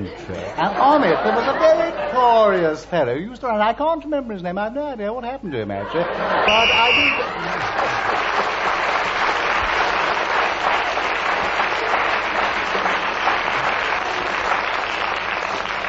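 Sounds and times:
laughter: 0:00.0 - 0:02.8, 0:05.5 - 0:08.7
speech: 0:00.0 - 0:08.5
audience clapping: 0:06.4 - 0:15.8.

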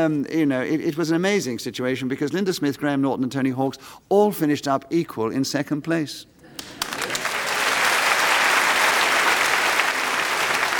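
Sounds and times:
speech: 0:00.0 - 0:06.9
audience applause: 0:06.6 - 0:10.7.

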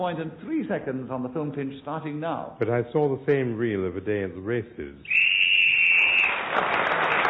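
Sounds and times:
speech: 0:00.0 - 0:05.3, 0:06.6 - 0:07.2
whistle signalling end of time: 0:05.1 - 0:06.5.

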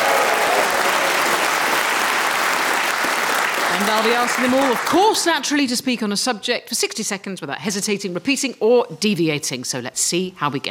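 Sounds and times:
live studio audience cheering and applauding: 0:00.0 - 0:05.2
speech: 0:03.8 - 0:10.7.

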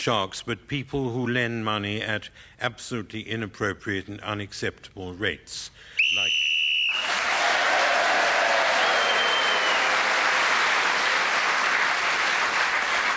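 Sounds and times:
speech: 0:00.0 - 0:06.4
audience round of applause: 0:06.9 - 0:13.1.

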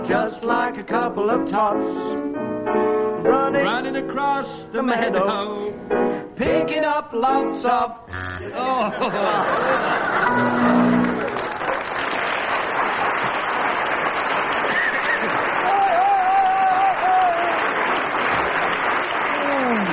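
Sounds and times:
speech: 0:00.1 - 0:11.0
scattered laughter and chatter: 0:08.6 - 0:10.9
audience applause after a musical performance at a 1979 broadcasting ball: 0:09.4 - 0:19.9.

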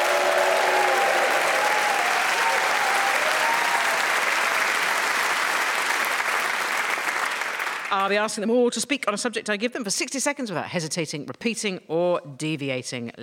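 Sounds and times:
studio audience cheering and applauding: 0:00.0 - 0:08.1
speech: 0:07.9 - 0:13.2.

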